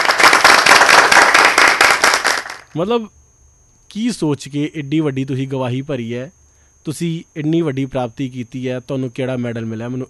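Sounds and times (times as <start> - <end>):
audience clapping for a 194-year-old tortoise: 0.0 - 2.7
speech: 2.8 - 3.2, 3.9 - 10.0.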